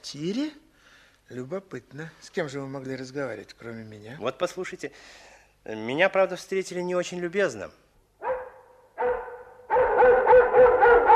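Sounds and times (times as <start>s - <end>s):
speech: 0.0s - 0.6s, 1.3s - 7.8s
dog barking: 8.2s - 11.1s.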